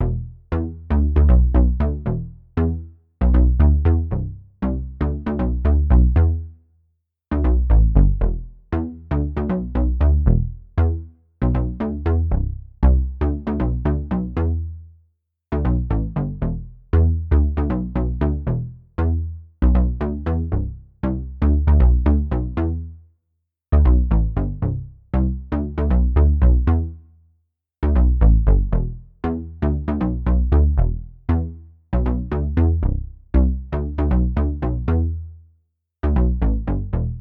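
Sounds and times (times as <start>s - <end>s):
bass: 0.0s - 6.7s, 7.3s - 23.1s, 23.7s - 37.1s.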